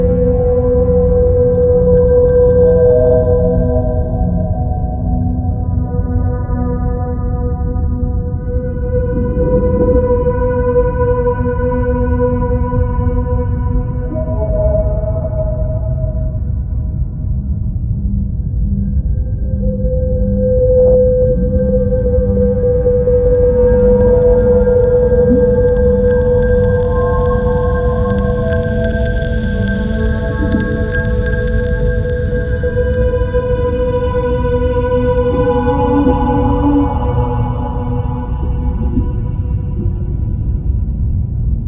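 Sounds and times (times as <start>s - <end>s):
whale song: 0.0s - 41.6s
low rumble: 30.4s - 41.6s.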